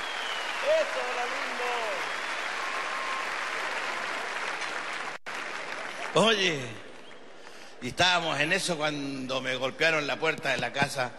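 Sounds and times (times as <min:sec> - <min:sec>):
audience applause: 0:00.0 - 0:06.4
speech: 0:00.6 - 0:02.2, 0:06.1 - 0:06.8, 0:07.8 - 0:11.1.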